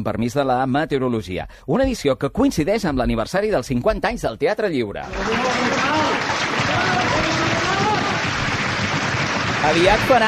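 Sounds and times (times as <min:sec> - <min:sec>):
speech: 0:00.0 - 0:06.2, 0:09.6 - 0:10.2
spontaneous audience applause: 0:05.0 - 0:10.2.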